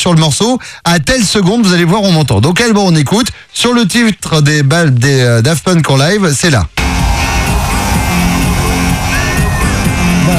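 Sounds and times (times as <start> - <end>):
speech: 0.0 - 6.8
concert crowd: 6.8 - 10.3
man whistling: 7.7 - 10.3.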